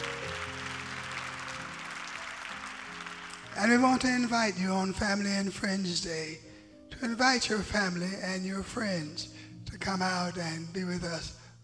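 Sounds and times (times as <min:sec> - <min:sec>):
audience clapping: 0:00.0 - 0:04.6
speech: 0:03.6 - 0:11.6.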